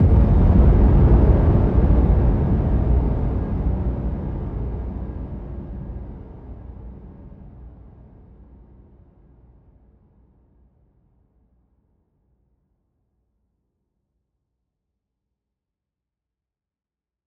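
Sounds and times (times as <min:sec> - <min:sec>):
explosion: 0:00.0 - 0:04.8.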